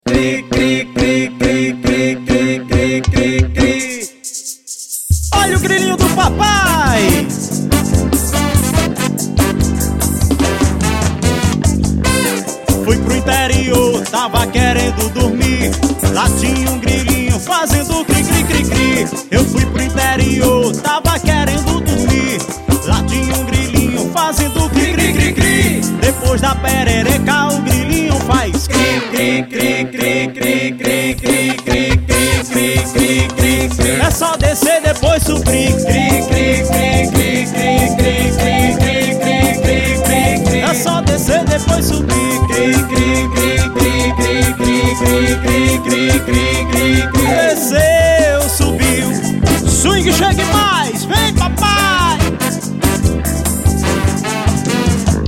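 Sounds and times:
swing music: 0.1s - 55.2s.

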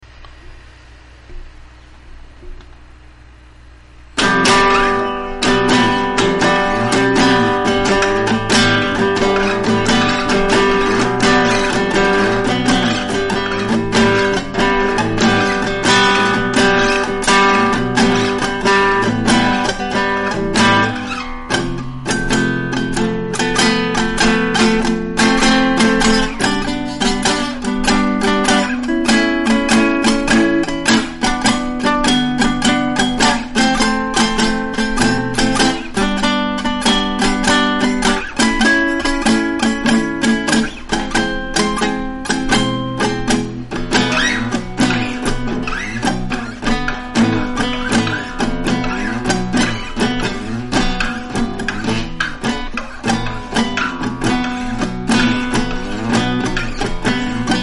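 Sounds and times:
acoustic music: 4.1s - 57.6s.

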